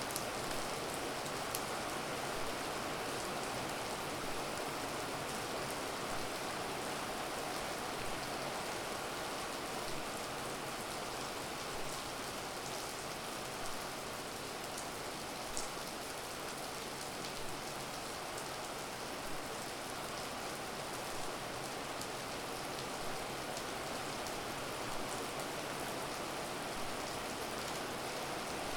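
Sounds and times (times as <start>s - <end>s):
rain heard from inside: 0.0s - 28.7s.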